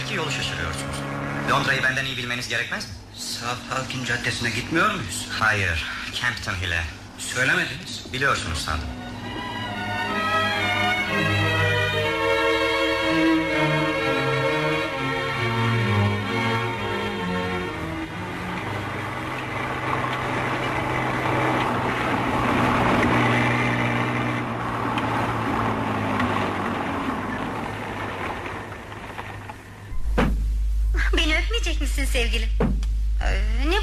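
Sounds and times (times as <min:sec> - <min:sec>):
car engine running while driving: 0:00.0 - 0:33.8
speech: 0:00.1 - 0:09.0.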